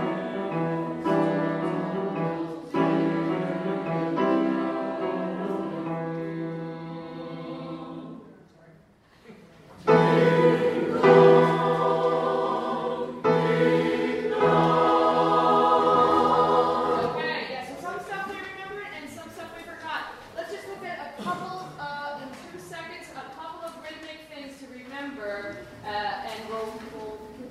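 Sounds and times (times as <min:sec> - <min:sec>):
Christmas jazz music: 0:00.0 - 0:08.2, 0:09.9 - 0:17.2.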